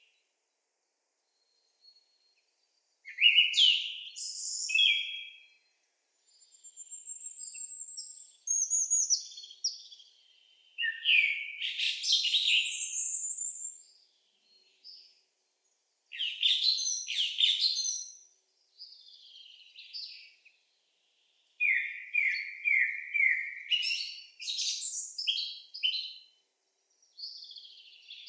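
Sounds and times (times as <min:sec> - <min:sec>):
Turdus philomelos song thrush singing: 0:01.2 - 0:28.2.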